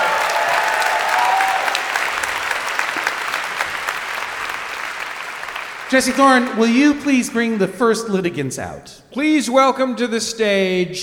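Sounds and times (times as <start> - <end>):
audience applause: 0.0 - 8.0
speech: 5.9 - 11.0.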